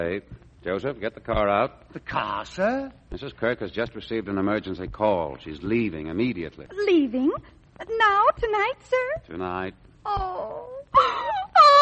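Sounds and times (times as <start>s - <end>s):
speech: 0.0s - 11.2s
person crying in wailing sobs: 10.1s - 11.8s.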